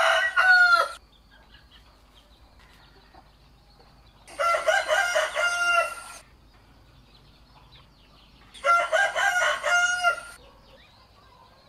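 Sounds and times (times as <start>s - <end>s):
rooster crowing: 0.0s - 1.0s, 4.3s - 6.2s, 8.6s - 10.4s.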